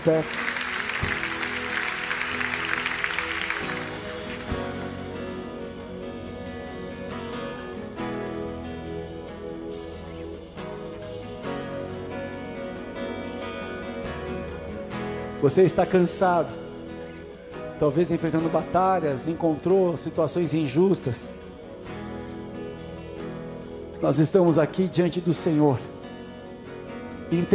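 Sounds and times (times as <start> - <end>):
speech: 0.0 - 1.2, 15.4 - 16.6, 17.8 - 21.4, 24.0 - 25.9, 27.3 - 27.5
audience applause: 0.0 - 4.8
sustained instrumental music: 0.0 - 27.5.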